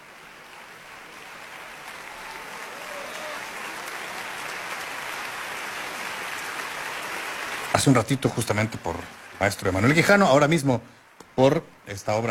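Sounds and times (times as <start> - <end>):
concert audience applauding in the concert hall of Centro Cultural Tlacna: 0.0 - 10.8
speech: 7.8 - 12.2.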